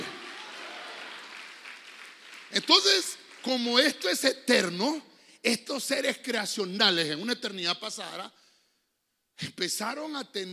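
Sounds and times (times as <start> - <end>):
audience clapping: 0.0 - 4.3
speech: 2.5 - 8.4, 9.4 - 10.5.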